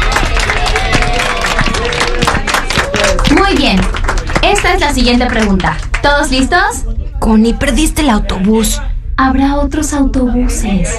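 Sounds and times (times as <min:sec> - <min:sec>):
audience applause: 0:00.0 - 0:06.2
speech: 0:03.3 - 0:10.9.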